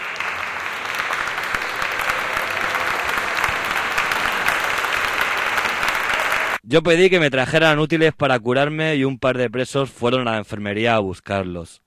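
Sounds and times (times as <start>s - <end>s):
burst of applause: 0.0s - 6.6s
speech: 6.7s - 11.8s.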